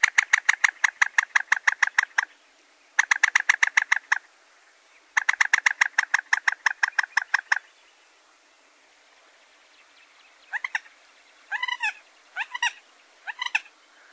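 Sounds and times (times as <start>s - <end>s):
common moorhen clucking: 0.0s - 2.4s, 3.0s - 4.3s, 5.0s - 7.8s, 10.3s - 14.1s.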